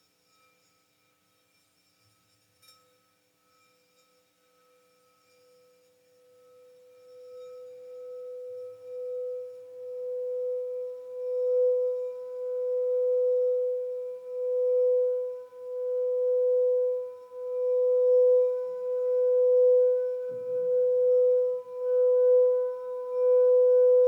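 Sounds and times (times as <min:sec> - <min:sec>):
crystal singing bowl ringing: 0:00.0 - 0:24.0.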